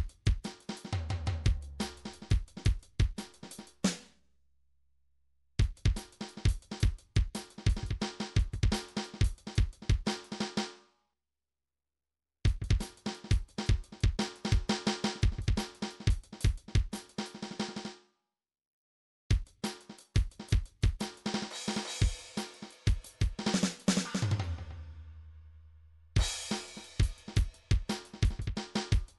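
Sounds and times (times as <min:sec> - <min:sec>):
MIDI drum pattern: 0:00.0 - 0:04.1, 0:05.6 - 0:10.6, 0:12.5 - 0:17.8, 0:19.3 - 0:24.9, 0:26.2 - 0:29.1.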